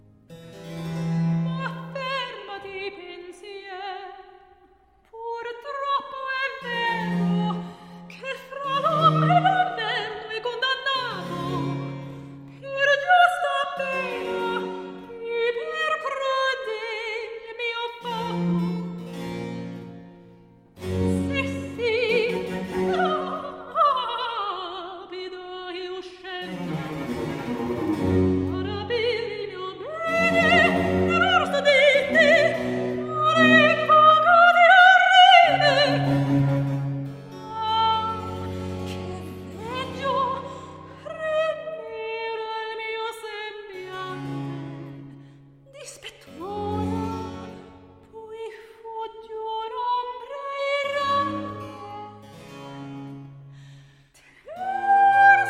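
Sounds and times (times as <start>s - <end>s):
cantata recitative: 1.4s - 19.0s, 20.8s - 44.9s, 45.7s - 52.4s, 54.1s - 55.4s.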